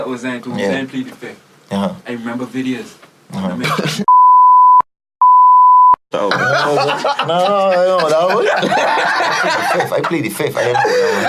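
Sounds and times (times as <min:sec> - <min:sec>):
speech: 0:00.1 - 0:04.1, 0:06.2 - 0:11.2
laughter: 0:03.6 - 0:04.1, 0:06.2 - 0:11.2
high-pitched censor bleeps: 0:04.1 - 0:06.0.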